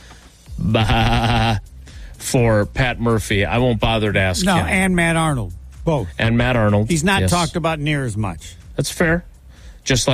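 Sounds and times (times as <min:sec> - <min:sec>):
sheep bleating: 0:00.6 - 0:01.7
speech: 0:00.7 - 0:10.1.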